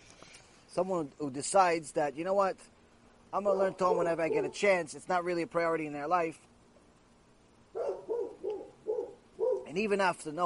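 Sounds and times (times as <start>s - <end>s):
speech: 0.8s - 6.5s, 9.8s - 10.4s
dog barking during a Torah lecture: 3.5s - 4.6s, 7.8s - 9.7s.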